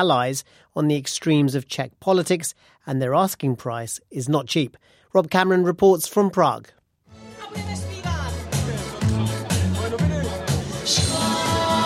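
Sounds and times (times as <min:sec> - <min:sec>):
speech: 0:00.0 - 0:06.8
mostly elderly crowd clapping along at an outdoor campaign rally: 0:08.6 - 0:11.8.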